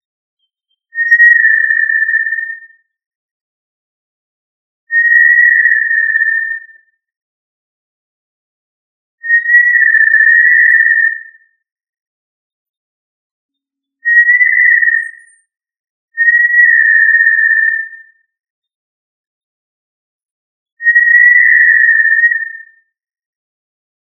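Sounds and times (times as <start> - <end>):
tinamou whistling long steady pure notes: 0.5 - 2.8, 4.9 - 6.9, 9.2 - 11.6, 14.0 - 15.5, 16.2 - 18.2, 20.8 - 22.8.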